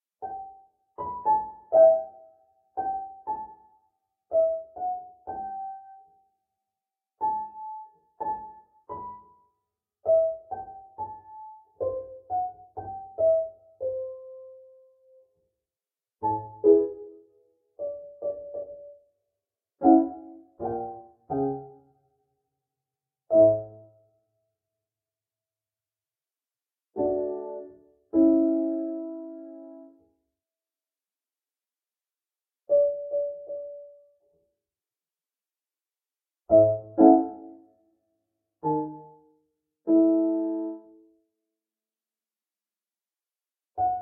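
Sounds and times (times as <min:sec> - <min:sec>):
piano: 0:00.0 - 0:06.4, 0:07.1 - 0:15.5, 0:16.2 - 0:19.2, 0:19.8 - 0:22.2, 0:23.2 - 0:24.1, 0:26.9 - 0:30.4, 0:32.6 - 0:34.6, 0:36.4 - 0:37.8, 0:38.6 - 0:41.3, 0:43.7 - 0:43.9.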